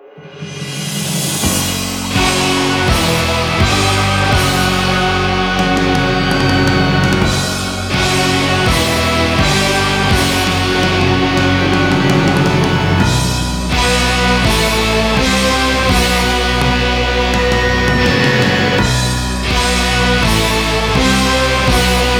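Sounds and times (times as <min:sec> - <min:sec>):
background music: 0:01.0 - 0:22.1.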